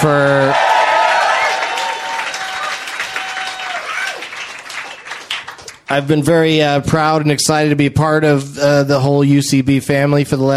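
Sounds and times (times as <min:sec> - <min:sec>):
speech: 0:00.0 - 0:00.6, 0:05.9 - 0:10.5
person cheering: 0:00.0 - 0:04.4
audience applause: 0:00.0 - 0:05.9
whoops and whistle: 0:00.6 - 0:04.3.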